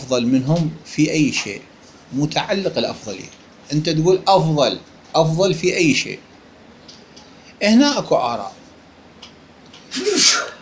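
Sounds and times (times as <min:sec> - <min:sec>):
speech: 0:00.0 - 0:06.3, 0:07.6 - 0:08.6
human sneeze: 0:09.9 - 0:10.5.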